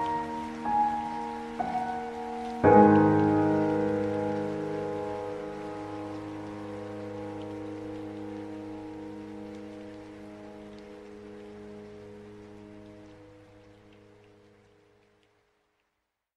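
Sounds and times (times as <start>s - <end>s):
rain: 0.0s - 16.3s.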